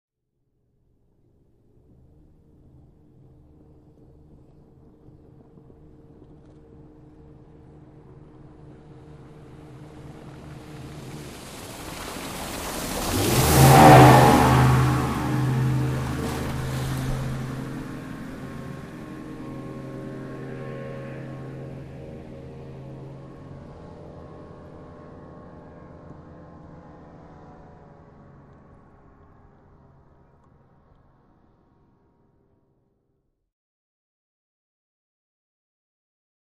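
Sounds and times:
Ranger boat passing by fast with acceleration: 0:00.8 - 0:32.5
shore wash at tail: 0:06.9 - 0:28.4.

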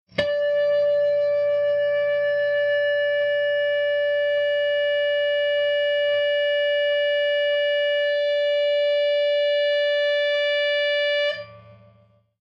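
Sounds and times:
electric guitar feedback: 0:00.1 - 0:12.3.

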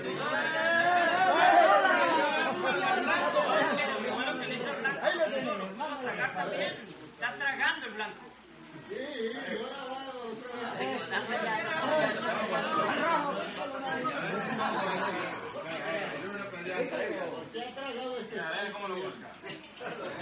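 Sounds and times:
male crowd walla at a cockfight: 0:00.0 - 0:20.2
laughter: 0:11.0 - 0:16.2, 0:19.4 - 0:20.2.

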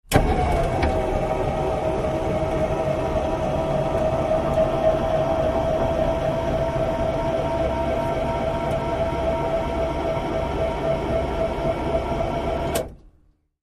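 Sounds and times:
Humvee trunk pneumatics switching on and off: 0:00.1 - 0:09.0, 0:10.3 - 0:13.0.

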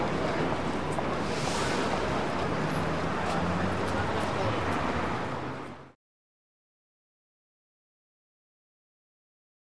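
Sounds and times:
city traffic at midday: 0:00.0 - 0:06.0.

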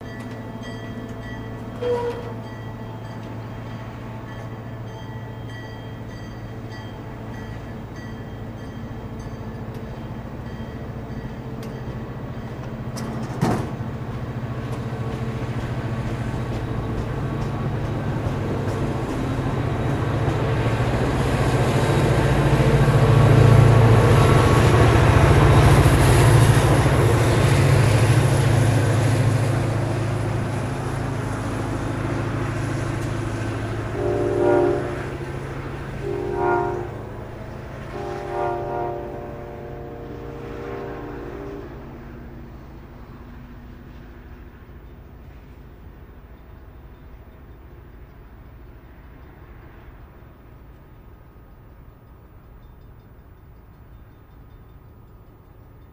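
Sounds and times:
train idling: 0:00.0 - 0:55.9
train horns: 0:00.2 - 0:06.2, 0:18.6 - 0:42.3.

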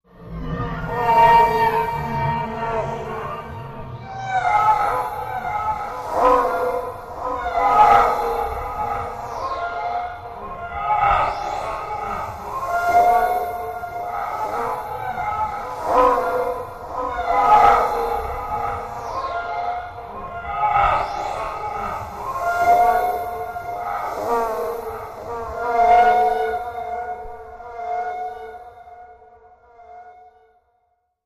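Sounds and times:
alien cry echoing: 0:00.1 - 0:30.3
ambience: 0:00.1 - 0:30.4.

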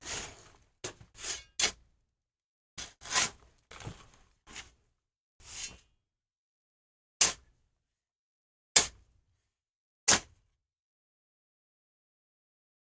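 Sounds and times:
shovel digging dirt: 0:00.0 - 0:01.8, 0:02.8 - 0:03.5, 0:07.2 - 0:07.5, 0:08.8 - 0:09.0, 0:10.1 - 0:10.4.

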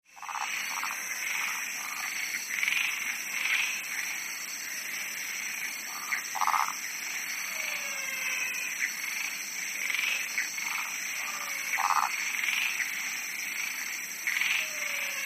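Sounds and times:
frogs calling with pulsed croaks and trills: 0:00.0 - 0:15.2.

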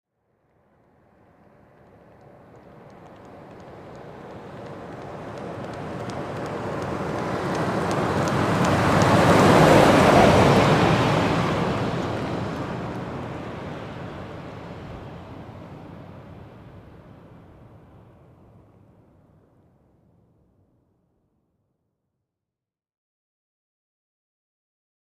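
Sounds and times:
Ford Expedition running slowly: 0:00.8 - 0:15.5.

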